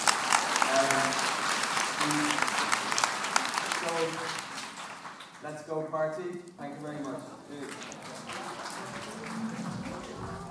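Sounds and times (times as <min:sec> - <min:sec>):
crowd audience applause: 0:00.0 - 0:05.4, 0:07.5 - 0:10.4
speech: 0:05.5 - 0:09.5.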